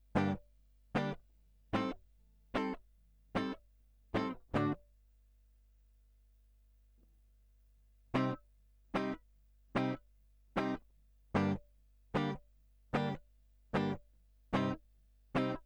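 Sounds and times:
guitar line: 0.2s - 0.4s, 1.0s - 1.2s, 2.6s - 2.8s, 3.4s - 3.6s, 4.2s - 4.8s, 8.2s - 8.4s, 9.0s - 9.2s, 9.8s - 10.0s, 10.6s - 10.8s, 11.4s - 11.6s, 12.2s - 12.4s, 13.0s - 13.2s, 13.8s - 14.0s, 14.6s - 14.8s, 15.4s - 15.6s.

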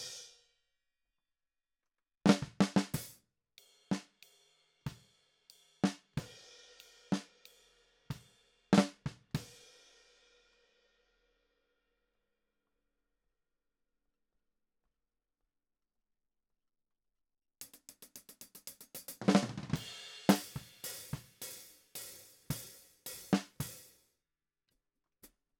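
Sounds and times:
snare drum: 2.3s - 3.2s, 8.7s - 9.4s, 17.6s - 23.9s.

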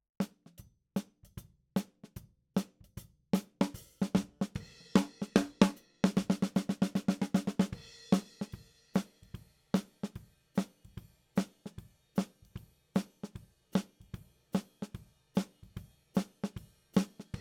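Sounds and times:
snare drum top in ragtime style: 3.4s - 10.8s, 11.4s - 17.3s.

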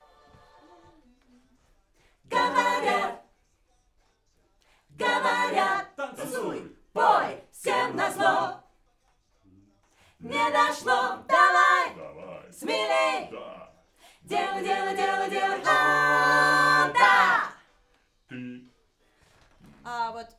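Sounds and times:
backing vocals on AKG microphone: 2.3s - 3.2s, 5.0s - 8.6s, 10.2s - 17.6s.

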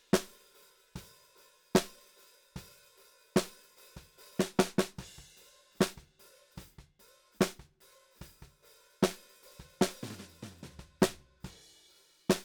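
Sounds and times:
snare drum: 0.0s - 0.4s, 1.8s - 2.0s, 3.4s - 11.6s, 12.3s - 12.4s.

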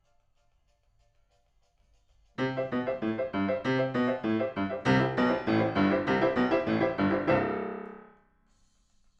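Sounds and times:
piano: 2.4s - 8.2s.

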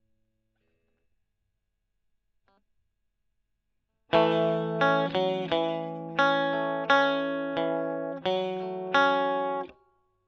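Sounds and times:
electric guitar: 4.1s - 9.8s.

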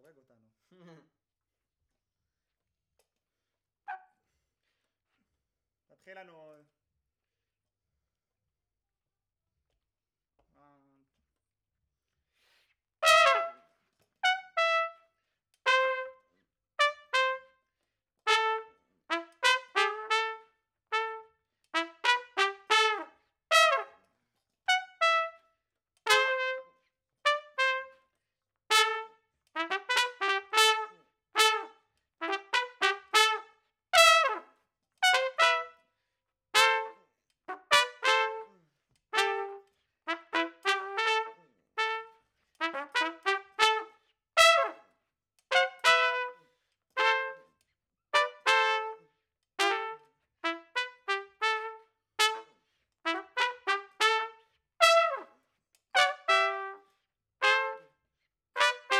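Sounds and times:
trumpet: 13.0s - 17.7s, 18.3s - 24.1s, 24.7s - 28.1s, 28.7s - 35.9s, 36.5s - 47.6s, 48.2s - 58.0s, 58.6s - 58.9s.

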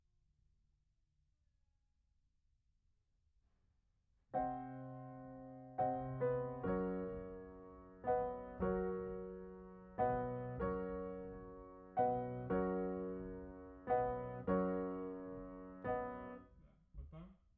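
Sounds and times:
piano: 4.3s - 16.7s.

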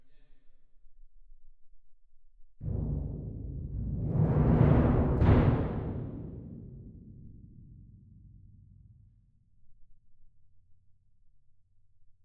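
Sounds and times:
percussion: 2.6s - 9.6s.

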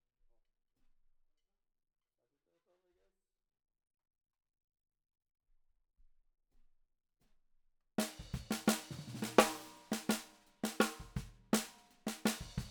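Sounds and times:
snare drum: 8.0s - 12.6s.

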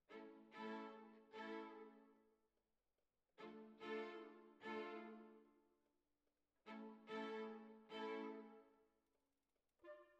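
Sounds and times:
violins: 0.0s - 2.0s, 3.4s - 5.4s, 6.6s - 8.7s.

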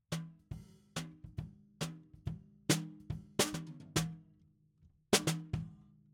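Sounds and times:
snare drum: 0.1s - 4.2s, 5.2s - 5.7s.

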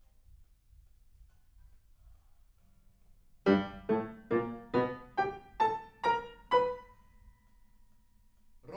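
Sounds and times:
piano: 3.4s - 7.7s.

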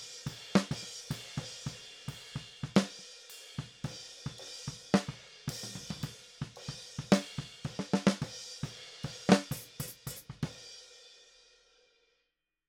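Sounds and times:
snare drum: 0.3s - 1.8s, 2.6s - 3.0s, 4.7s - 10.6s.

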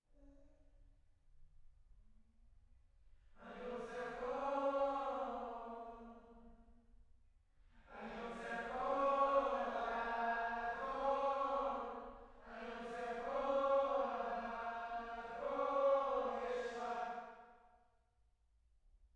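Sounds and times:
choir singing: 3.4s - 6.2s, 7.9s - 17.4s.

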